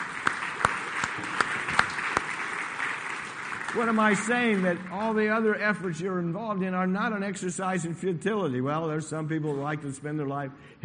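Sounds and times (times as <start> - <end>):
audience applauding: 0.0 - 5.5
speech: 3.7 - 10.8.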